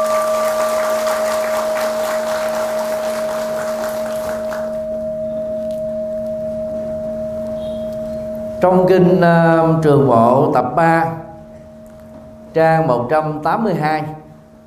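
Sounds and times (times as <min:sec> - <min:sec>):
audience applause: 0:00.0 - 0:04.8
steady electronic hum: 0:00.0 - 0:14.6
speech: 0:08.6 - 0:11.2, 0:12.5 - 0:14.2.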